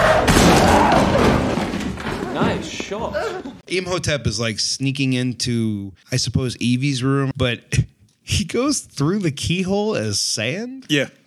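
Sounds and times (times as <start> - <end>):
thrown chair slamming into a man: 0.0 - 3.6
speech: 2.9 - 11.2.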